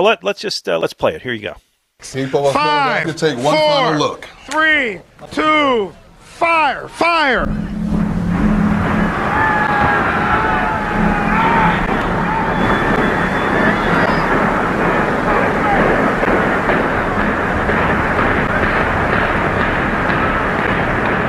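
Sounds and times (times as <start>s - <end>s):
speech: 0.0s - 7.8s
stadium demolition implosion rumbling collapse: 7.4s - 21.2s.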